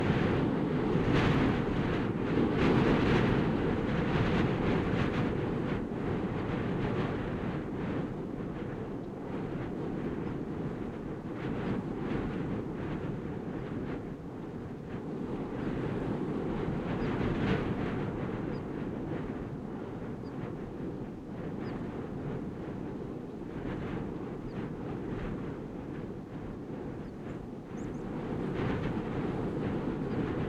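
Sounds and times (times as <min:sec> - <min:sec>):
gusty wind behind a rock at Dovrefjell: 0:00.0 - 0:30.4
bird at Dovrefjell: 0:27.0 - 0:28.0.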